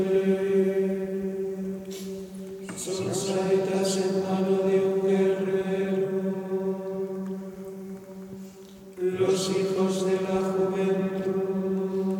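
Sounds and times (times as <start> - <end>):
binaural Catholic Gregorian chant at a mass liturgy: 0.0 - 12.1.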